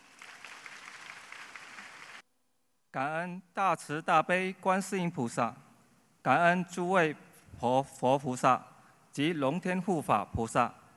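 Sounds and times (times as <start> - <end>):
audience applause at a Buddhist gathering: 0.0 - 2.2
speech: 3.0 - 5.6, 6.2 - 10.8.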